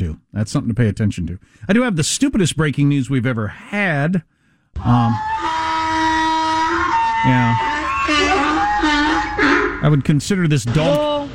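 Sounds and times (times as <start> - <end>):
speech: 0.4 - 5.6, 7.2 - 9.0, 9.8 - 11.3
human voice imitating a donkey braying: 4.8 - 9.9.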